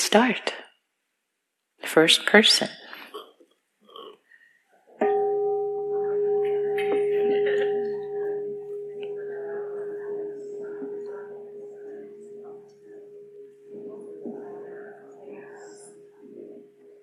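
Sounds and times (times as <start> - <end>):
speech: 0.1 - 0.6, 1.8 - 2.8
bell ringing: 5.0 - 17.0.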